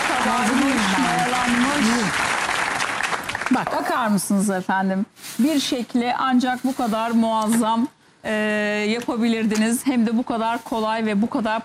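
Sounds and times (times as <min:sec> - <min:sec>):
studio audience applause on a cooking show: 0:00.0 - 0:03.8
speech: 0:00.2 - 0:02.4, 0:03.5 - 0:11.6.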